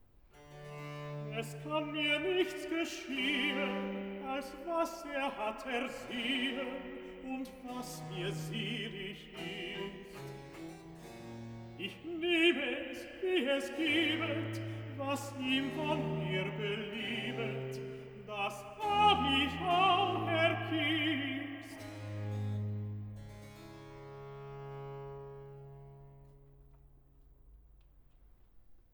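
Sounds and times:
tenor singing recitative: 1.3s - 10.4s, 11.8s - 22.3s.

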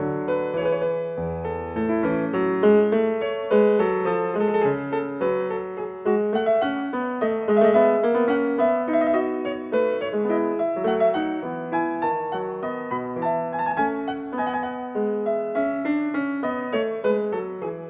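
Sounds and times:
courante dance piece: 0.0s - 17.8s.

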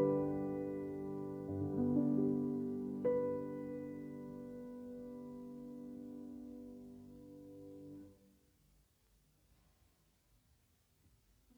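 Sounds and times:
piano piece in G major vivace: 0.0s - 8.3s.

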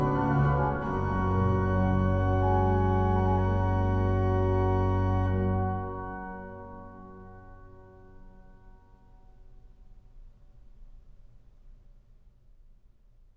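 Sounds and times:
organ: 0.0s - 7.4s.

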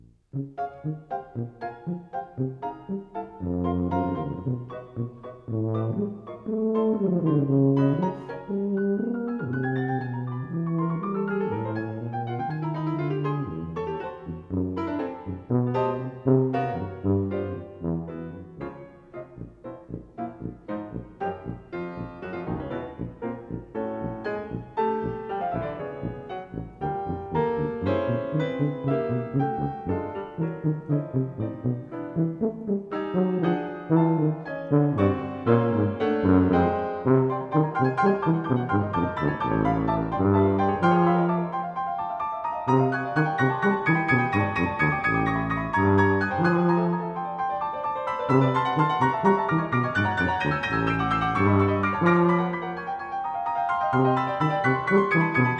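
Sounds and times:
bass tuba: 0.0s - 55.5s
piano: 0.0s - 55.5s.

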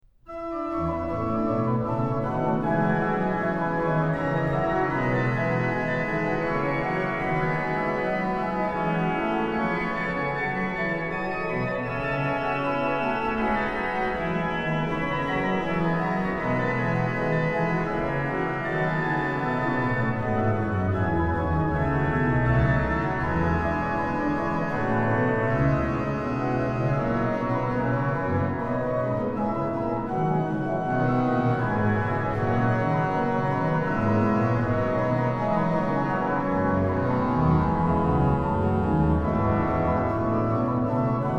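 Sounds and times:
organ playing chorale preludes: 0.3s - 41.3s.

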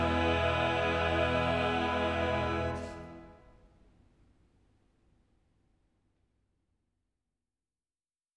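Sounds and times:
choir singing cantatas: 0.0s - 3.5s.

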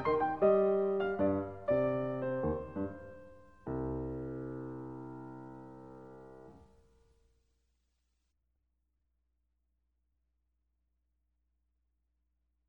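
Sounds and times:
piano gigue: 0.0s - 6.5s.

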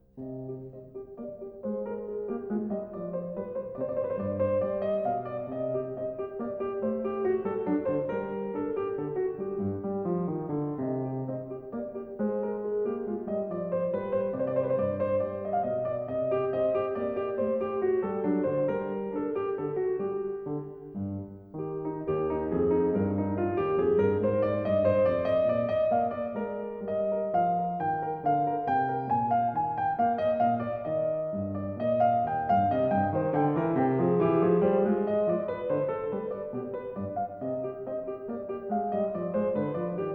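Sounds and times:
piano minuet: 0.0s - 40.1s.

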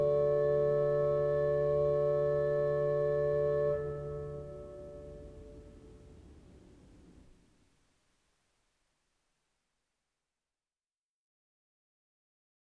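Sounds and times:
organ: 0.0s - 5.8s.

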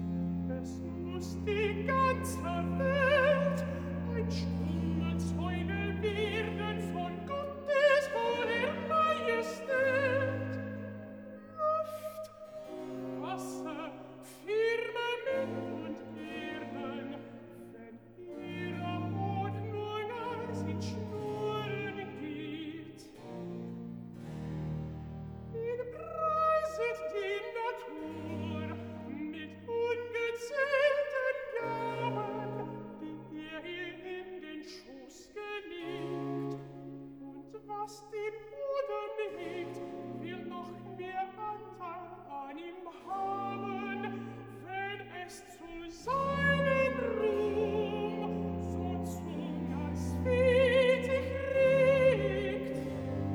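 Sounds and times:
alto singing recitative: 0.2s - 23.6s, 25.5s - 53.3s.

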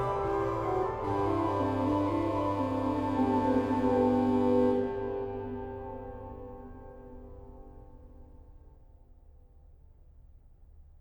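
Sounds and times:
organ playing a chorale hymn: 0.0s - 7.6s.

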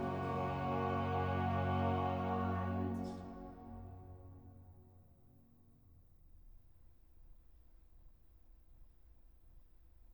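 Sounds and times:
choir singing: 0.0s - 3.8s.

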